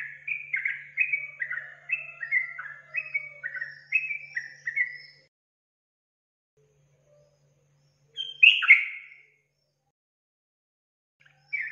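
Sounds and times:
Yellow-vented Bulbul song: 0.0s - 5.3s, 6.6s - 9.8s, 11.2s - 11.7s.

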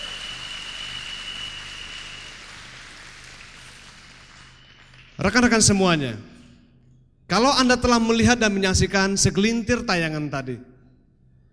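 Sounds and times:
audience applause: 0.0s - 5.4s
speech: 5.2s - 6.3s, 7.3s - 10.7s.

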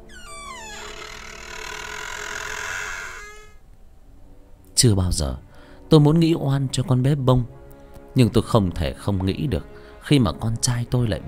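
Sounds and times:
house door creaking open: 0.0s - 3.6s
speech: 4.8s - 7.6s, 8.2s - 11.2s.

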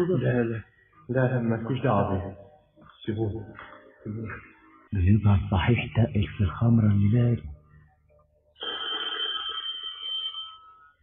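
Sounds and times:
speech: 0.0s - 2.5s, 3.1s - 7.5s
telephone ringing: 8.6s - 11.0s.

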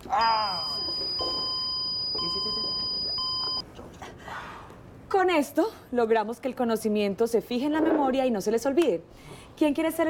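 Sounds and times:
speech: 0.2s - 0.5s, 5.2s - 10.0s
alarm sounding: 0.2s - 3.6s.

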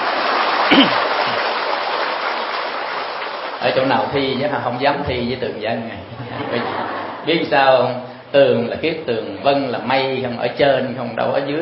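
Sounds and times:
audience applause at a temple sermon: 0.0s - 4.2s
speech: 0.7s - 1.0s, 3.6s - 11.6s
laughter: 6.0s - 7.6s.

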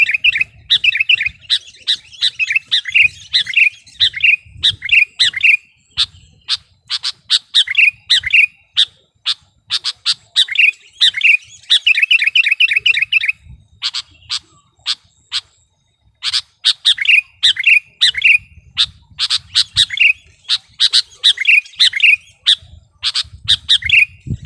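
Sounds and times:
Sooty-headed bulbul song: 0.0s - 24.4s.

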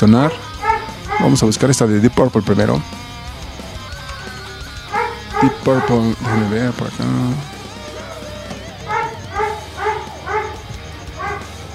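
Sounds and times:
speech: 0.0s - 0.5s, 1.2s - 3.0s, 5.4s - 7.5s
dog barking: 0.0s - 1.8s, 3.9s - 11.7s.

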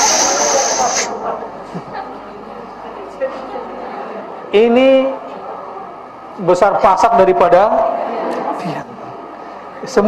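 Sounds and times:
voice imitating a Baygon insecticide aerosol spray: 0.0s - 1.2s
speech: 4.5s - 5.2s, 6.4s - 8.0s, 9.8s - 10.0s.

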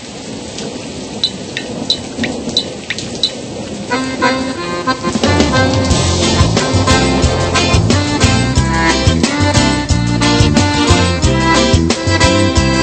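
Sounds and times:
scattered drips: 0.0s - 4.0s
deep rolling thunder rumble: 0.0s - 9.8s
steady hissing rain: 0.0s - 12.8s.

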